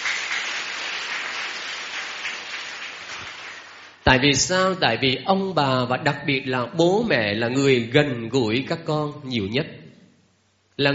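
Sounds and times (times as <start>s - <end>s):
crowd of children clapping, prompted by a teacher: 0.0s - 4.0s
speech: 4.1s - 9.8s, 10.8s - 10.9s.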